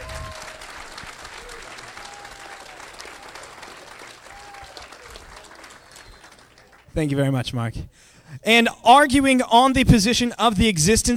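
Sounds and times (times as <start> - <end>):
audience applause: 0.0 - 7.0
speech: 7.0 - 11.1.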